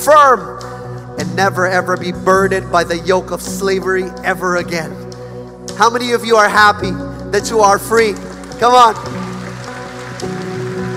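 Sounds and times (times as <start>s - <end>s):
speech: 0.1s - 0.7s, 1.4s - 5.0s, 5.8s - 9.2s
people clapping: 7.8s - 10.9s.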